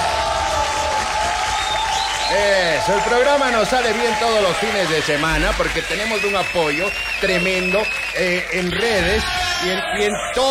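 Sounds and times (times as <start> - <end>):
applause and cheering on a radio show: 0.0 - 10.5
speech: 2.3 - 10.5.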